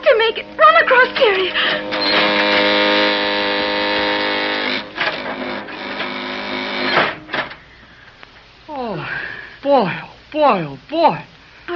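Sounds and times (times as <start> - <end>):
elevator rumbling and clunking: 0.0 - 7.6
elevator car descending its shaft: 0.0 - 7.7
speech: 0.3 - 2.2, 9.7 - 11.7.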